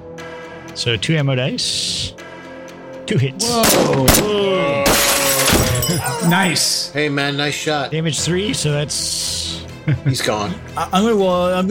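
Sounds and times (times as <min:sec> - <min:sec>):
speech: 0:00.8 - 0:02.2, 0:03.1 - 0:05.2, 0:05.9 - 0:11.6
glass shattering: 0:04.8 - 0:06.6.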